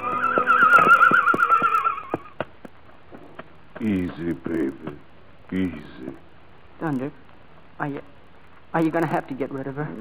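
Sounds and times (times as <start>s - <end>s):
horse whinnying in a long high-pitched call: 0.0s - 2.3s
hooves knocking and clopping: 0.0s - 6.3s
speech: 3.8s - 9.9s.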